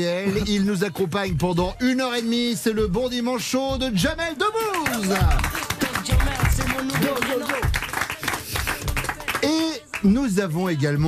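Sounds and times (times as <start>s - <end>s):
speech: 0.0s - 5.6s, 6.8s - 7.8s, 9.4s - 11.0s
studio audience applause: 4.7s - 9.5s.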